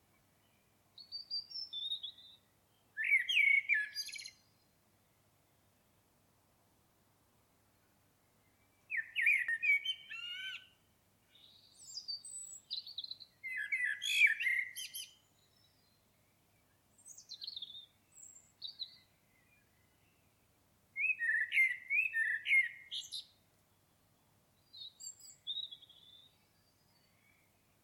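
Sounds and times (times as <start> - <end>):
common blackbird singing: 0.4 - 4.6, 8.7 - 16.0, 16.6 - 20.2, 21.0 - 23.4, 24.6 - 27.6.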